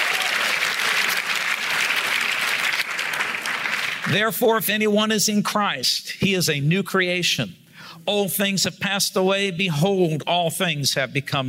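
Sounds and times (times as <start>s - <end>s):
audience shouting: 0.0s - 0.6s
audience hand clapping: 0.0s - 4.2s
speech: 4.1s - 11.4s.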